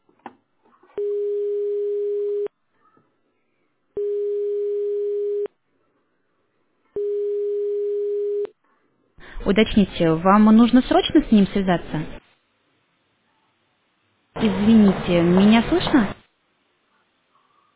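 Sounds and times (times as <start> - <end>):
telephone ringback tone while a call is being placed: 1.0 - 2.5, 4.0 - 5.5, 7.0 - 8.5
speech: 9.4 - 12.2, 15.1 - 16.2.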